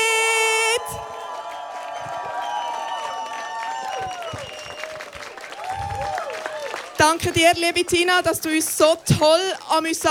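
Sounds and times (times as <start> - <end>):
loud sustained applause from a large crowd: 0.4 - 7.8
cheers and whistles: 0.6 - 6.9
speech: 7.0 - 10.0.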